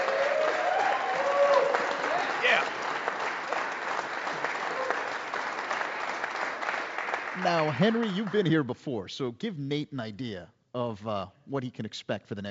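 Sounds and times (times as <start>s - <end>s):
audience applause: 0.0s - 8.6s
speech: 7.4s - 12.4s.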